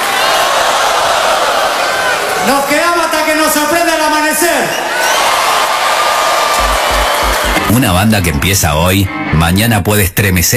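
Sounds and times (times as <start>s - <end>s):
audience applause: 0.0s - 3.4s, 4.8s - 8.4s
audience cheering: 0.0s - 8.6s
speech: 2.4s - 5.2s, 7.7s - 10.5s.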